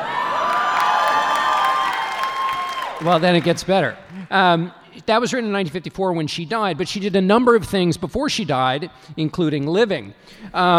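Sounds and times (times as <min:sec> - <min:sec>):
audience cheering with shouts and whoops: 0:00.0 - 0:04.5
audience clapping: 0:00.4 - 0:04.3
speech: 0:03.0 - 0:10.7.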